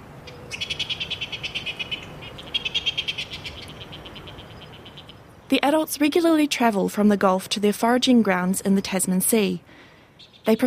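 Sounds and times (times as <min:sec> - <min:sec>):
low hum: 0:00.0 - 0:10.6
coast petrel calling: 0:00.2 - 0:05.3, 0:10.2 - 0:10.6
speech: 0:05.5 - 0:09.7, 0:10.4 - 0:10.6.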